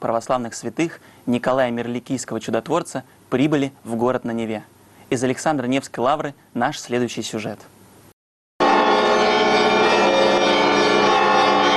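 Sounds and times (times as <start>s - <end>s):
speech: 0.0s - 7.8s
church bells ringing: 8.6s - 11.7s.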